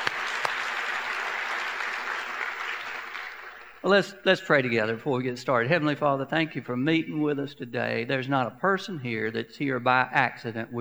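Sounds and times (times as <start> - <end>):
audience applause: 0.0 - 4.2
speech: 3.8 - 10.7.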